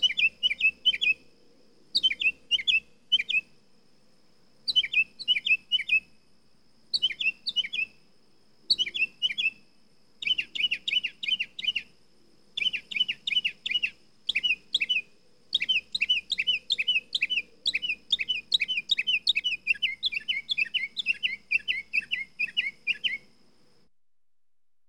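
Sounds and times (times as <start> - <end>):
mockingbird singing varied phrases: 0.0 - 1.2, 2.0 - 3.5, 4.7 - 6.1, 6.9 - 8.0, 8.7 - 9.6, 10.2 - 11.9, 12.6 - 23.3.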